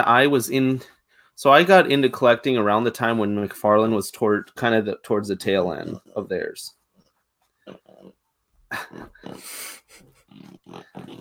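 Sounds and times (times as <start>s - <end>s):
speech: 0.0s - 6.8s, 7.7s - 11.2s
dog snorting and grunting: 5.5s - 11.2s.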